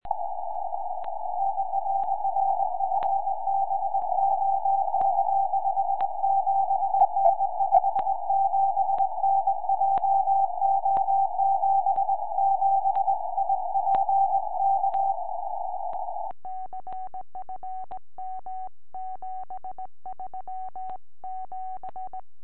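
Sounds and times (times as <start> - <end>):
70cm tropospheric radio signal: 0.0 - 16.3.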